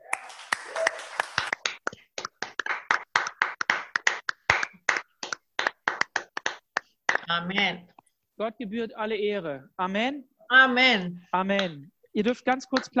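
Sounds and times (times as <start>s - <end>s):
audience applause: 0.0s - 6.6s
speech: 7.3s - 12.9s.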